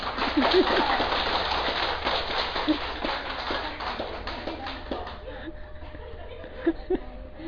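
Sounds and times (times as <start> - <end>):
laughter: 0.0 - 1.4, 2.5 - 7.4
audience clapping hands: 0.0 - 5.3.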